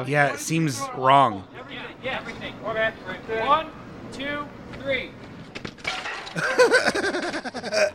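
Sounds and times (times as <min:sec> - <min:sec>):
speech: 0:00.0 - 0:05.2, 0:06.3 - 0:07.9
objects thrown and smashing against a bike: 0:05.5 - 0:06.6
laughter: 0:06.4 - 0:07.9.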